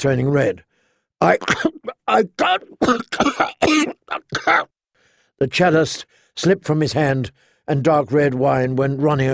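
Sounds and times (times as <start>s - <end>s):
speech: 0.0s - 4.8s, 5.4s - 9.3s
voice imitating a choking coughing fit: 1.3s - 4.7s.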